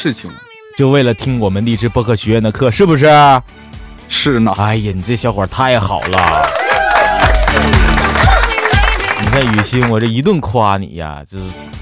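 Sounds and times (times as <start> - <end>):
speech: 0.0 - 6.6, 9.3 - 11.8
sparse crowd applause: 6.0 - 10.1.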